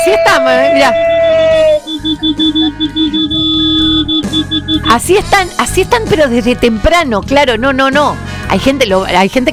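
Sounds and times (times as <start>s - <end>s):
car, truck and bus horns honking: 0.0s - 5.2s
speech: 0.1s - 1.1s, 2.0s - 9.5s.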